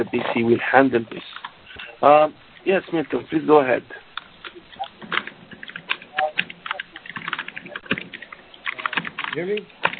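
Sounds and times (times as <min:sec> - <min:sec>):
speech: 0:00.0 - 0:04.0, 0:09.4 - 0:09.8
computer keyboard typing: 0:04.4 - 0:09.9.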